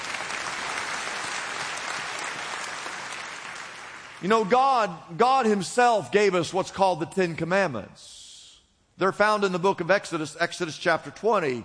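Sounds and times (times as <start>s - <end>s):
room full of people applauding: 0.0s - 4.2s
speech: 4.2s - 8.2s, 9.0s - 11.6s.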